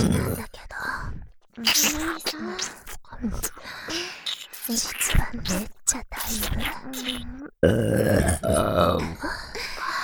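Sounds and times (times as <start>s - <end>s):
speech: 1.6s - 4.1s, 4.7s - 9.4s
burp: 7.6s - 9.1s.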